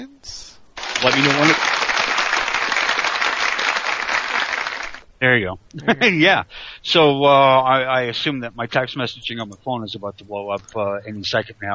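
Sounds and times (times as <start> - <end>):
speech: 0.0 - 1.8, 5.2 - 11.7
applause sound effect played from a button: 0.8 - 5.0.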